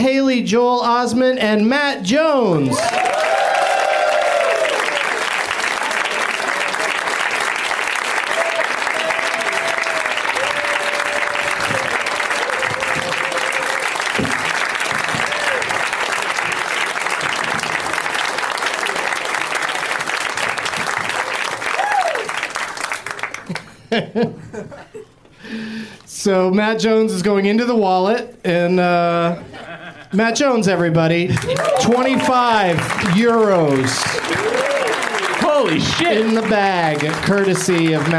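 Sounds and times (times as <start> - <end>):
speech: 0.1 - 3.2, 26.2 - 29.4, 30.1 - 34.2, 35.7 - 38.1
audience clapping and cheering to welcome four guests: 2.6 - 23.9, 31.3 - 38.1
laughter: 23.4 - 25.2, 29.4 - 30.2.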